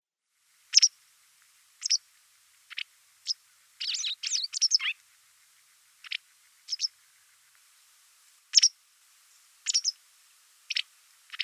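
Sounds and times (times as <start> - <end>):
White wagtail chirping, Motacilla alba: 0.7 - 1.0, 1.8 - 2.1, 2.7 - 5.0, 6.0 - 7.0, 8.5 - 8.8, 9.6 - 10.0, 10.7 - 11.4.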